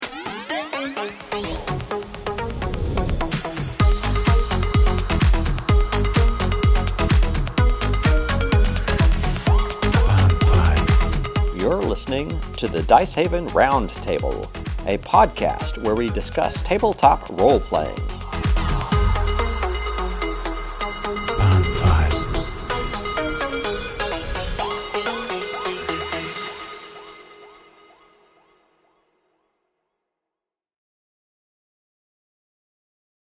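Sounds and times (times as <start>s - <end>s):
house music intro: 0.2s - 13.4s, 14.3s - 27.1s.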